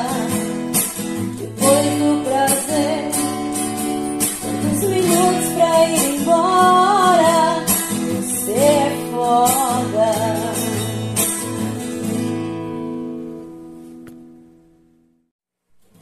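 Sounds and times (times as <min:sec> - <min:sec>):
person singing: 0:00.0 - 0:00.5, 0:01.3 - 0:03.6, 0:04.4 - 0:11.0
acoustic guitar: 0:00.0 - 0:16.0.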